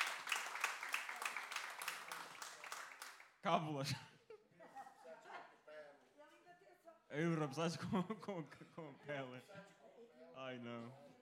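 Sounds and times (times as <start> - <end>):
audience clapping: 0.0 - 3.6
speech: 3.4 - 4.2, 7.1 - 9.8, 10.4 - 11.1.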